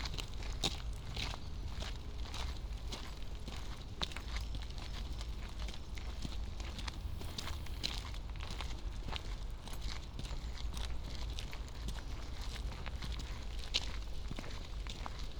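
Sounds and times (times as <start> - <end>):
footsteps on a path through University Parks: 0.0 - 15.3
constant low rumble: 6.0 - 8.8.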